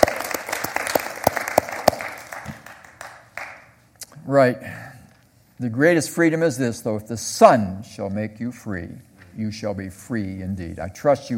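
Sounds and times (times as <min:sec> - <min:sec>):
audience applause: 0:00.0 - 0:03.7
speech: 0:04.3 - 0:04.9, 0:05.6 - 0:11.3.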